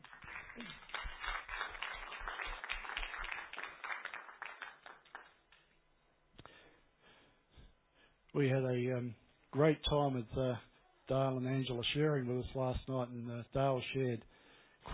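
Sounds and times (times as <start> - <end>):
audience round of applause: 0.0 - 5.4
speech: 0.6 - 0.8, 8.4 - 14.9.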